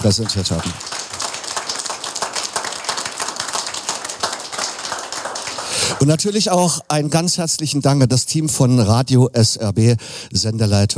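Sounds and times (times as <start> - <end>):
speech: 0.0 - 1.0, 6.0 - 10.9
crowd applause: 0.0 - 6.5.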